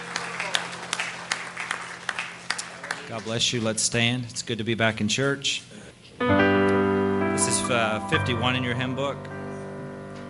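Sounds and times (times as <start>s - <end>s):
church congregation clapping hands in praise: 0.0s - 3.5s
speech: 3.1s - 6.6s, 7.7s - 9.3s.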